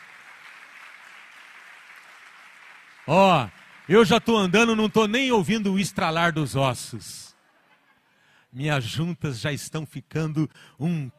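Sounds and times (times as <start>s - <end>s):
audience applauding: 0.0s - 6.9s
speech: 3.1s - 7.3s, 8.5s - 11.1s.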